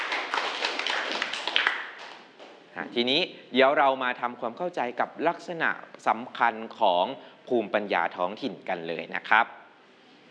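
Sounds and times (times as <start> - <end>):
classroom clapping: 0.0 - 2.3
speech: 2.8 - 9.6.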